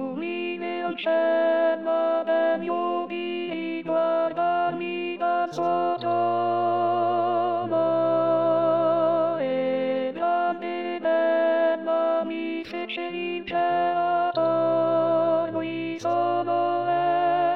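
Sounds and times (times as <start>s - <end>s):
contralto voices singing: 0.2s - 17.5s.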